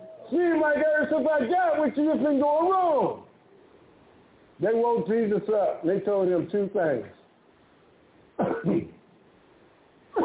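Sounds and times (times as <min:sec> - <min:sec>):
speech: 0:00.3 - 0:03.2, 0:04.6 - 0:07.2
throat clearing: 0:08.4 - 0:09.0.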